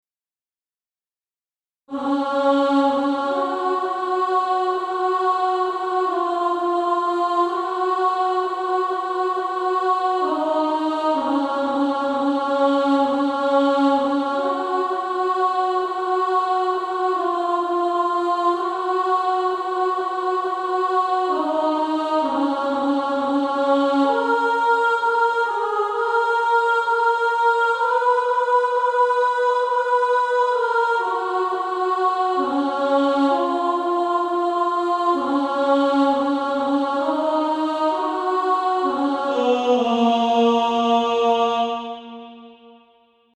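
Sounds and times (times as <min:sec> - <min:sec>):
female choir alto section singing: 0:01.9 - 0:42.8.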